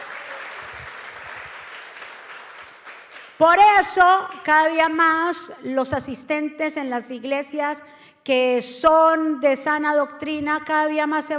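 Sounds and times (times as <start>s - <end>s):
audience applauding loudly: 0.0s - 3.4s
speech: 3.4s - 11.3s.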